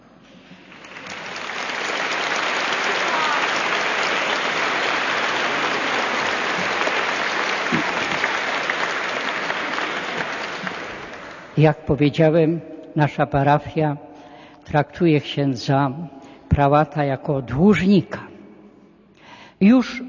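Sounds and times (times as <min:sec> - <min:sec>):
audience clapping: 0:00.4 - 0:11.6
speech: 0:11.6 - 0:18.3, 0:19.6 - 0:20.0.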